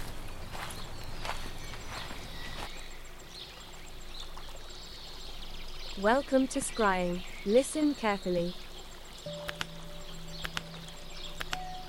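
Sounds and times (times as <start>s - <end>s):
footsteps of a player character walking forward in an audio-only video game: 0.0s - 2.8s
steady wash of ambient noise: 0.0s - 11.8s
speech: 6.0s - 8.6s, 9.2s - 9.4s.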